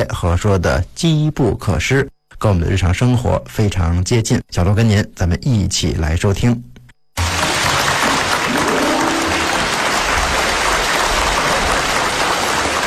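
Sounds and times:
speech: 0.0 - 7.3
audience applause: 7.2 - 12.8.

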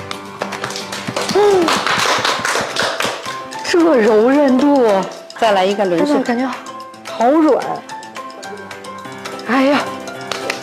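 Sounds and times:
applause from a group of women at a dance or exercise team display: 0.8 - 3.4
speech: 3.7 - 7.9, 9.5 - 9.9.

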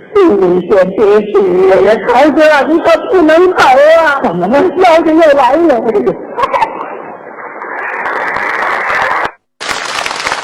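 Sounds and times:
speech: 0.2 - 6.5
audience applause: 7.6 - 10.4.

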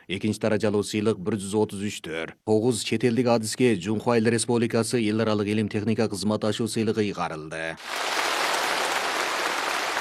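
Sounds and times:
speech: 0.1 - 8.2
thunderous applause at a science and technology award ceremony: 7.8 - 9.9.

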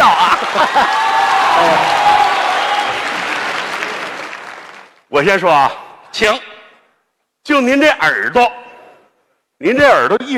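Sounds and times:
audience applause: 0.0 - 5.0
speech: 5.1 - 6.5, 7.4 - 8.6, 9.6 - 10.3.

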